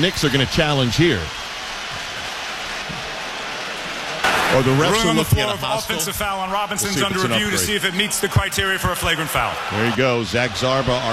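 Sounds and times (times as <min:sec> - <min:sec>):
speech: 0:00.0 - 0:01.4, 0:04.5 - 0:11.1
basketball fans cheering in arena: 0:00.0 - 0:11.1.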